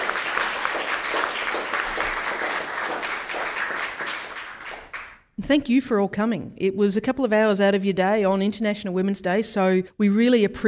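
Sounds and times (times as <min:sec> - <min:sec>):
crowd applauding: 0:00.0 - 0:05.2
speech: 0:05.5 - 0:10.6.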